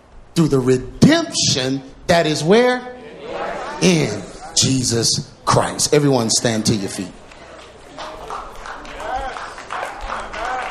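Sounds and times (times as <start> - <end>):
speech: 0.4 - 7.2
slow hand clap: 7.3 - 10.7.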